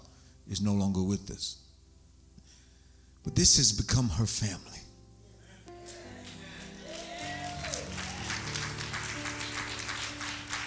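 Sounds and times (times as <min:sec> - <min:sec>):
speech: 0:00.5 - 0:01.7, 0:03.2 - 0:04.8
hand claps: 0:05.9 - 0:10.6.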